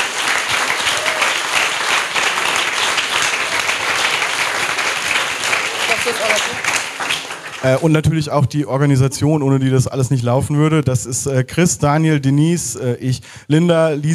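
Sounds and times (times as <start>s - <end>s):
audience applause: 0.0s - 8.1s
speech: 6.1s - 6.8s, 7.6s - 14.1s.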